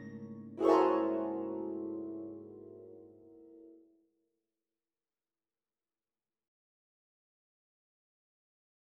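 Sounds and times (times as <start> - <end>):
harp beat: 0.0 - 3.4.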